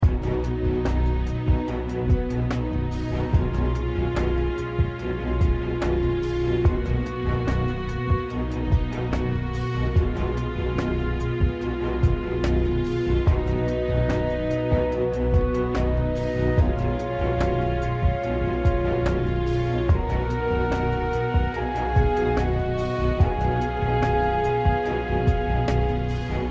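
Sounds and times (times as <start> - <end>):
victory music loop: 0.0 - 26.4.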